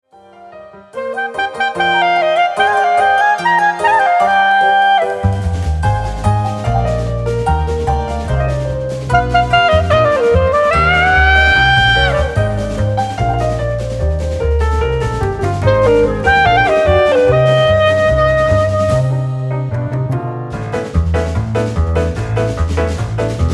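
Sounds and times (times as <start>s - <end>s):
klezmer music: 0.2s - 23.5s.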